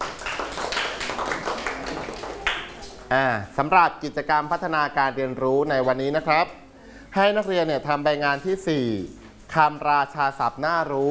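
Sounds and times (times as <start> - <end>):
clapping: 0.0 - 3.0
speech: 3.1 - 11.0.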